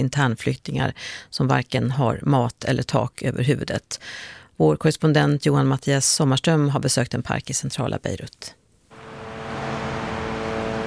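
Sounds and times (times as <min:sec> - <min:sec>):
speech: 0:00.0 - 0:08.6
drones buzzing in the sky in Beirut: 0:08.9 - 0:10.8.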